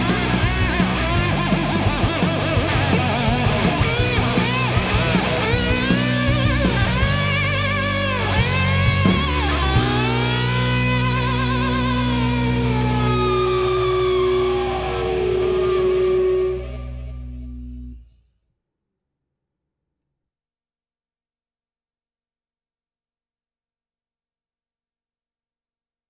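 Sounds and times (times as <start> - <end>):
instrumental mix: 0.0 - 18.1.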